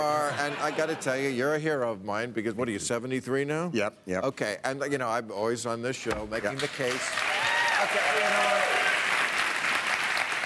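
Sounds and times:
speech: 0.0s - 7.2s, 7.8s - 8.8s
audience applause: 6.5s - 10.4s.

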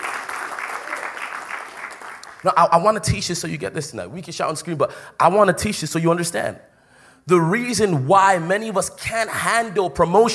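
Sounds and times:
audience clapping: 0.0s - 2.8s
speech: 2.4s - 10.3s.

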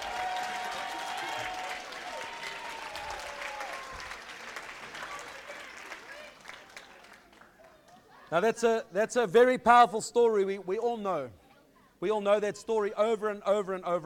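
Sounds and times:
audience applause: 0.0s - 7.9s
speech: 8.3s - 11.4s, 12.0s - 14.0s.

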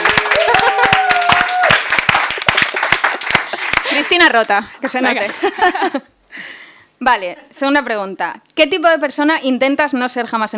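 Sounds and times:
applause: 0.0s - 4.5s
speech: 4.2s - 10.5s.

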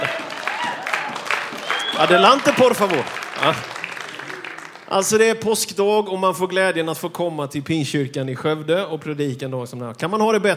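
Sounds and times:
audience applauding: 0.0s - 5.5s
speech: 2.0s - 3.8s, 4.9s - 10.5s.

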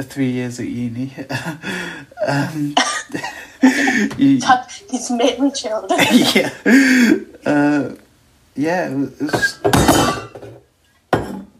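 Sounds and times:
speech: 0.0s - 8.0s, 8.6s - 10.5s
metal water bottle clanking: 9.4s - 10.6s.

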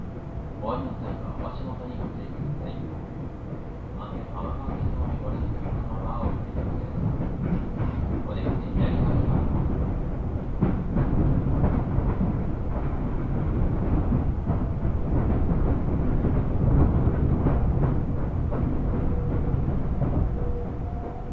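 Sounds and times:
Japanese commuter train carriage rumbling: 0.0s - 21.3s.

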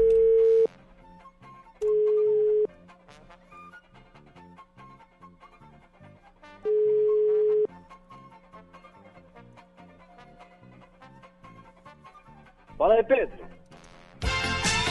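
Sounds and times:
ringback tone beeps as a phone call is placed: 0.0s - 0.7s, 1.8s - 2.7s, 6.7s - 7.7s
speech: 12.9s - 13.5s.

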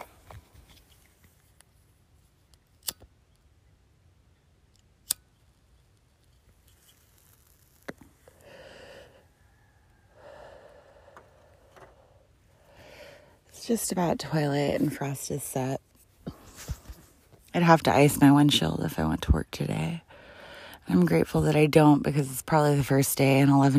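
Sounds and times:
lighter clicks lighting a cigarette: 2.8s - 3.1s, 5.0s - 5.2s
breathy hissing bursts: 8.2s - 13.5s
speech: 13.7s - 15.8s, 17.6s - 20.0s, 20.9s - 23.7s.

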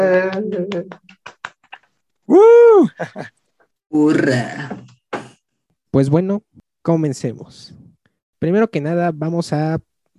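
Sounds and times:
applause: 0.0s - 1.9s
speech: 0.3s - 1.2s, 2.3s - 4.9s, 6.0s - 7.8s, 8.4s - 10.1s.

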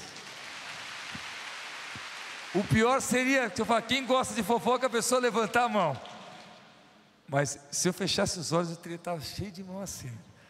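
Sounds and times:
audience applause: 0.0s - 3.6s
speech: 2.5s - 6.1s, 7.3s - 10.3s.

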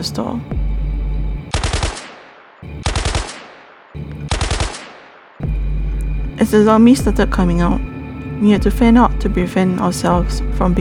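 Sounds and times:
speech: 0.0s - 0.6s, 6.4s - 10.7s
gunfire: 1.5s - 5.6s.

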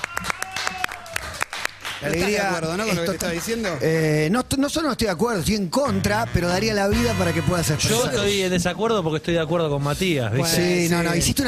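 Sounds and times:
studio applause of a few hands clapping: 0.0s - 3.8s
speech: 2.0s - 11.4s.

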